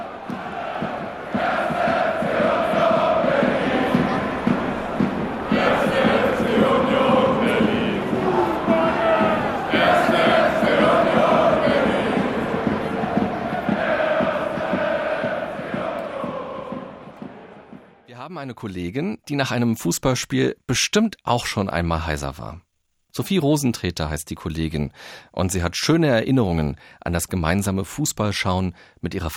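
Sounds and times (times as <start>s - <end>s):
large football stadium crowd chanting in unison: 0.0s - 18.1s
speech: 18.4s - 29.3s.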